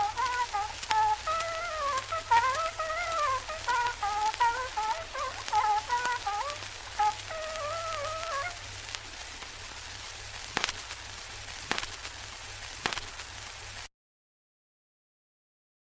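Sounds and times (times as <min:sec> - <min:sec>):
sikusarv horn playing folk music: 0:00.0 - 0:08.8.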